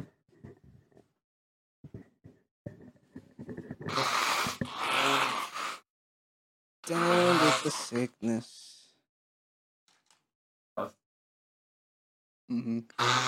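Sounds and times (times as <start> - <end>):
nose blowing: 3.9 - 5.9, 6.8 - 8.0, 12.9 - 13.2
speech: 7.7 - 8.7, 10.8 - 11.0, 12.5 - 13.2.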